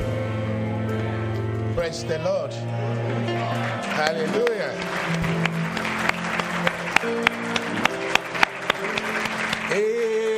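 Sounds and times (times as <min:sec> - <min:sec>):
sustained low musical drone: 0:00.0 - 0:10.0
speech: 0:01.8 - 0:05.5
audience clapping in a steady rhythmic beat: 0:02.7 - 0:10.3.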